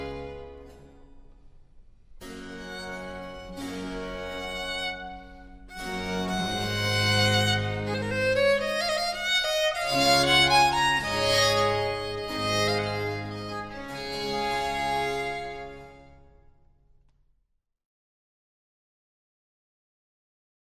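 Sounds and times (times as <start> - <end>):
string orchestra with basso continuo playing a concerto in G major: 0.0 - 1.2, 2.1 - 16.3.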